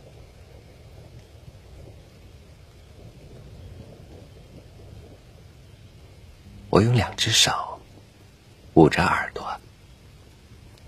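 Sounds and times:
thunder: 0.0 - 8.4
heavy rain falling into puddles in a courtyard: 0.0 - 10.8
speech: 6.8 - 7.7, 8.8 - 9.5.

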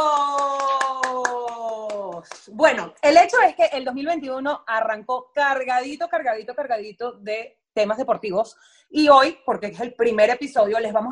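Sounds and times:
applause: 0.0 - 2.6
speech: 2.6 - 11.1.

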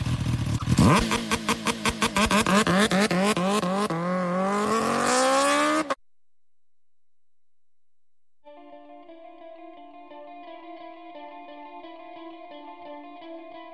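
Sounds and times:
motorcycle engine starting and revving: 0.0 - 6.0.

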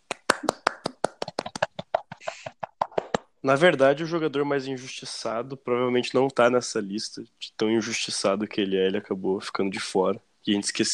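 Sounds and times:
hands clapping: 0.0 - 3.3
speech: 3.4 - 10.9.

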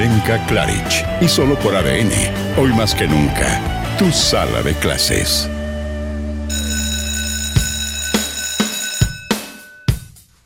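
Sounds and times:
speech: 0.2 - 5.6
school bell ringing: 6.5 - 10.1.

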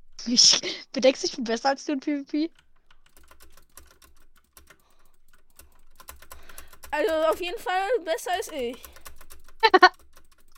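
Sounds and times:
speech: 0.2 - 2.6, 7.0 - 9.0, 9.6 - 10.0
typing on a cheap computer keyboard: 2.5 - 10.5.

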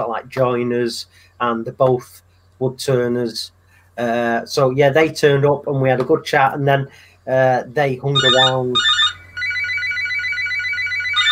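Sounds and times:
speech: 0.1 - 9.0
phone ringing with warbling electronic ring tone: 8.2 - 11.2.

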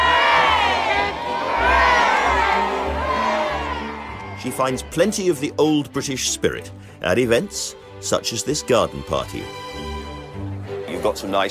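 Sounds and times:
crowd giving three cheers: 0.0 - 5.9, 10.2 - 11.4
speech: 4.5 - 9.6, 11.0 - 11.4.

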